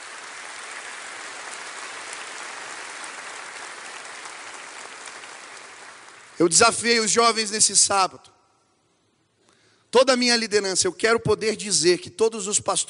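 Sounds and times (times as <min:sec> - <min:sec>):
audience applauding: 0:00.0 - 0:06.6
speech: 0:06.4 - 0:08.3, 0:10.0 - 0:12.8.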